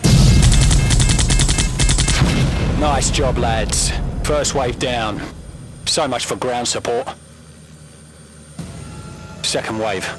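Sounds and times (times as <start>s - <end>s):
automatic gunfire during a firefight: 0.0s - 6.3s
dense low rumble: 0.0s - 6.8s
speech: 2.8s - 7.2s, 9.5s - 10.1s.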